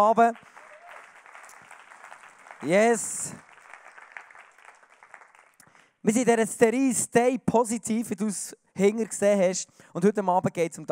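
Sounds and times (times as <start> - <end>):
speech: 0.0 - 0.6, 2.6 - 3.5, 6.0 - 10.8
audience applause: 0.3 - 5.6.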